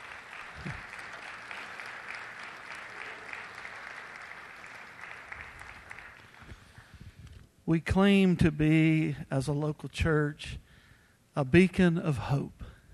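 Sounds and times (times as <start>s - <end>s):
audience applause: 0.0s - 6.8s
speech: 7.7s - 10.6s, 11.4s - 12.6s.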